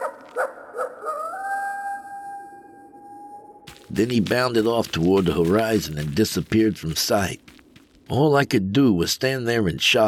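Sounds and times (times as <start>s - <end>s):
coyote howling: 0.0s - 3.6s
speech: 3.9s - 7.5s, 8.1s - 10.0s.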